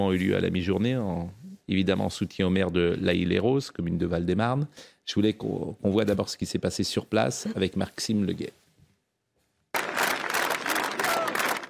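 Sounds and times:
speech: 0.0 - 8.6
crowd applause at rally: 9.7 - 11.6.

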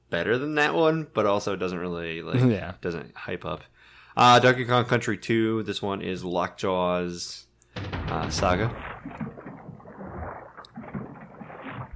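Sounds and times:
speech: 0.1 - 9.2
water sounds in video game music: 7.8 - 11.9.

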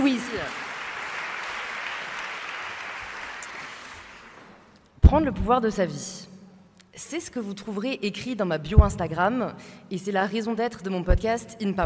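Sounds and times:
audience applause: 0.0 - 4.7
speech: 5.1 - 6.3, 7.0 - 11.8.

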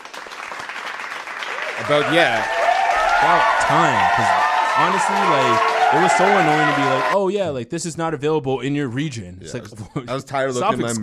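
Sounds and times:
applause: 0.0 - 7.2
speech: 1.8 - 2.6, 3.2 - 11.0.

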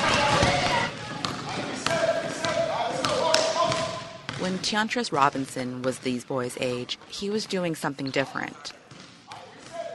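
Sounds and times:
ball bouncing on a hard surface: 0.0 - 4.7, 8.9 - 9.9
speech: 4.5 - 8.8.

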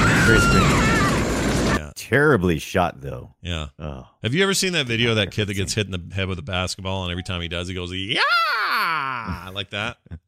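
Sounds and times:
movie death scream: 0.0 - 1.8, 8.2 - 9.4
speech: 0.3 - 0.8, 2.1 - 10.2.

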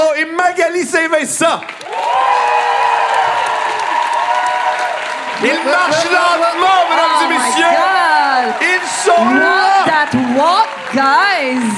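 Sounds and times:
speech: 0.4 - 2.4, 5.4 - 11.7
audience applause welcoming guests: 1.4 - 11.7.

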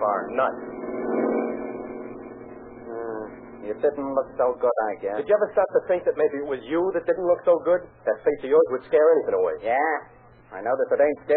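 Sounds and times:
car engine humming: 0.0 - 7.1
speech: 0.2 - 1.2, 3.6 - 11.3.

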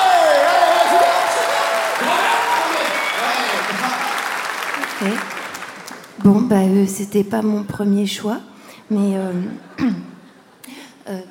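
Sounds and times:
applause: 0.0 - 6.2
speech: 6.2 - 10.1, 11.1 - 11.3.

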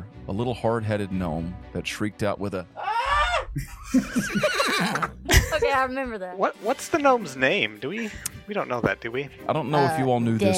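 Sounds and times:
speech: 0.3 - 10.5
laughter: 3.0 - 5.9
horse neighing: 4.3 - 5.0.

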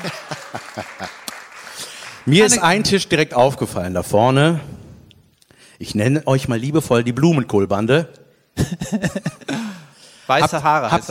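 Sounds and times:
laughter: 0.0 - 1.5, 8.6 - 9.8
small group clapping: 0.0 - 3.1
speech: 0.8 - 1.0, 2.3 - 4.8, 5.8 - 9.4, 10.3 - 11.0.

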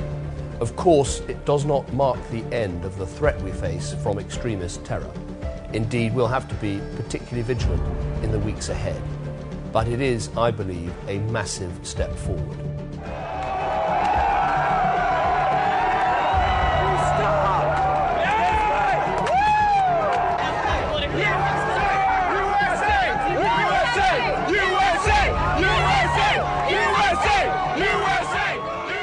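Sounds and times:
speech: 0.6 - 12.7
large crowd cheering and shouting outdoors in the streets: 13.0 - 29.0.

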